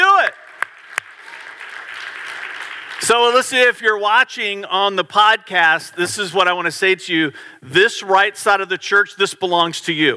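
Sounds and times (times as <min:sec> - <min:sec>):
audience clapping: 0:00.0 - 0:03.8
speech: 0:03.0 - 0:10.1.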